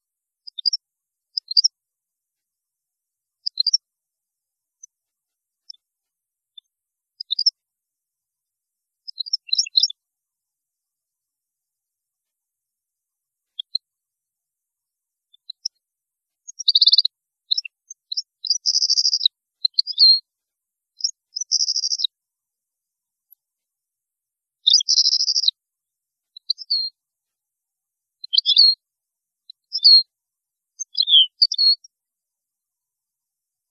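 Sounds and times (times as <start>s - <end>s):
European goldfinch twitter and trills: 0.5s - 0.8s, 1.4s - 1.7s, 3.5s - 3.8s, 7.2s - 7.5s, 9.1s - 10.0s, 16.4s - 20.2s, 21.0s - 22.1s, 24.6s - 25.6s, 26.4s - 26.9s, 28.2s - 28.8s, 29.5s - 30.1s, 30.8s - 31.9s.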